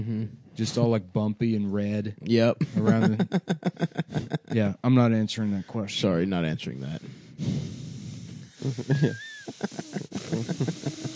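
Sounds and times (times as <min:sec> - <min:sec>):
speech: 0:00.0 - 0:07.7, 0:08.6 - 0:11.0
laughter: 0:02.6 - 0:04.8, 0:08.6 - 0:11.1
heavy breathing through the nose: 0:06.8 - 0:11.1.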